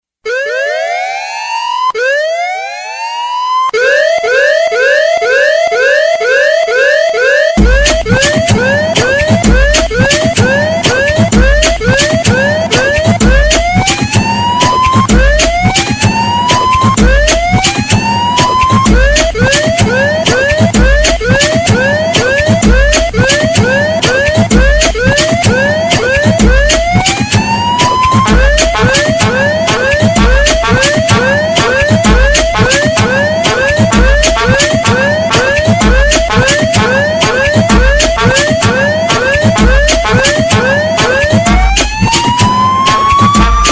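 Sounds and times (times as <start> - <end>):
siren remix: 0.2 - 43.7.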